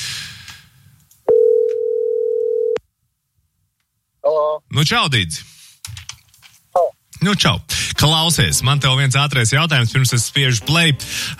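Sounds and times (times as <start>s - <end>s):
telephone ringing tone of outgoing call: 1.3s - 2.8s
speech: 4.6s - 5.5s, 7.2s - 11.3s.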